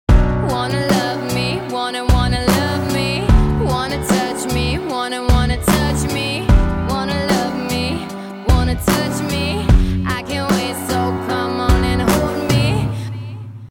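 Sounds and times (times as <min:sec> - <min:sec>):
hip hop music: 0:00.1 - 0:12.9.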